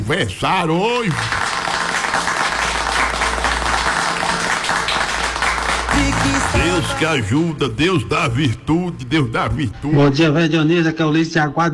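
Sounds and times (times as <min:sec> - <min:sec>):
speech: 0:00.1 - 0:01.5, 0:06.0 - 0:11.7
applause: 0:00.6 - 0:07.3.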